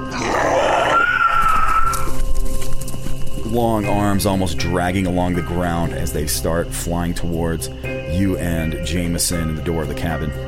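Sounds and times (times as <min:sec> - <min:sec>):
monster roar: 0:00.0 - 0:02.1
speech: 0:03.6 - 0:10.4.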